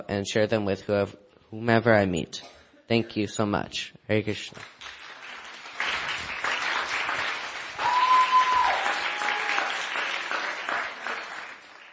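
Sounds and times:
speech: 0:00.0 - 0:05.0
audience applause: 0:04.6 - 0:11.9.

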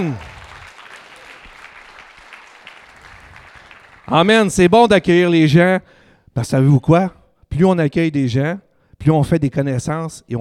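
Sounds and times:
speech: 0:00.0 - 0:00.3, 0:04.1 - 0:10.4
audience applauding: 0:00.0 - 0:04.5.

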